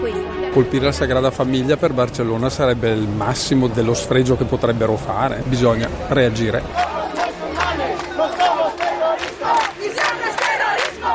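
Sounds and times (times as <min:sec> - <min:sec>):
speech: 0:00.0 - 0:06.9
large crowd chanting a slogan on the street: 0:06.6 - 0:11.1.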